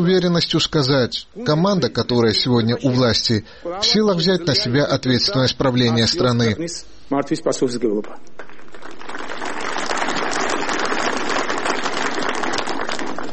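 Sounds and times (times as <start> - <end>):
speech: 0.0 - 8.4
crowd applause interrupting a speech: 8.4 - 13.3.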